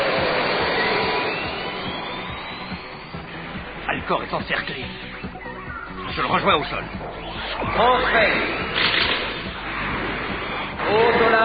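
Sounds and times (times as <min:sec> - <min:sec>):
cartoon Goldorak spacecraft taking off with jet-like roar: 0:00.0 - 0:11.4
speech: 0:04.1 - 0:05.1, 0:06.2 - 0:08.9, 0:10.9 - 0:11.4.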